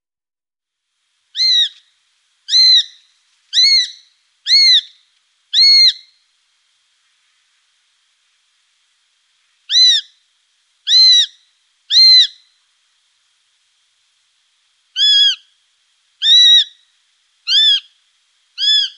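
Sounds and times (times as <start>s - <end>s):
Eurasian sparrowhawk shrill calls: 1.4s - 1.8s, 2.5s - 6.1s, 9.7s - 10.2s, 10.9s - 12.4s, 15.0s - 15.5s, 16.2s - 16.8s, 17.5s - 18.0s, 18.6s - 18.9s.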